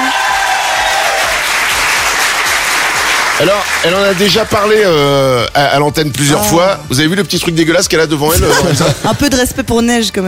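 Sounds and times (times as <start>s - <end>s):
studio audience applause: 0.0s - 5.0s
speech: 3.4s - 10.2s
laughter: 8.3s - 9.6s.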